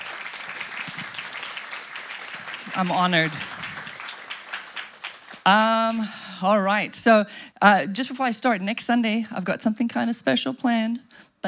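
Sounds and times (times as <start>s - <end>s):
audience applause at a church service: 0.0s - 5.6s
speech: 2.8s - 3.6s, 5.5s - 11.4s.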